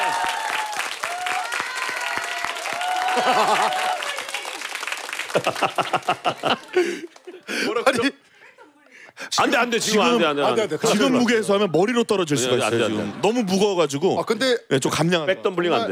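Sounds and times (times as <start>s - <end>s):
small group clapping: 0.0s - 8.0s
people laughing: 3.0s - 4.5s, 5.2s - 8.0s
speech: 3.2s - 3.9s, 5.3s - 8.3s, 9.4s - 15.8s.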